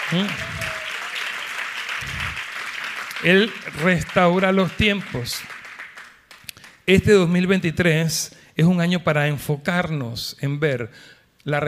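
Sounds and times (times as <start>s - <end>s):
audience applause: 0.0s - 6.8s
speech: 0.1s - 0.6s, 3.2s - 5.6s, 6.9s - 11.6s.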